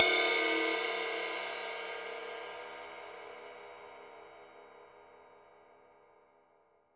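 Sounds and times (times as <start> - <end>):
dry ride cymbal: 0.0 - 4.3.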